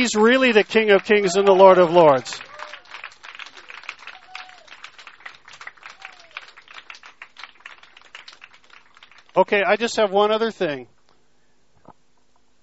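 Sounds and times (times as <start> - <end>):
speech: 0.0 - 2.5, 9.4 - 10.9
crowd applauding: 0.0 - 9.9
faint whoops or whistles: 4.1 - 4.8, 5.8 - 6.5.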